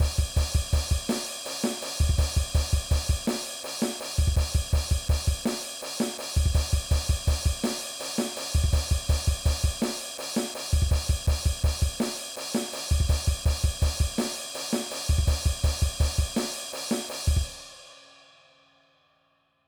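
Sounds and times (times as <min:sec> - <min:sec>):
drum beats: 0:00.0 - 0:17.6.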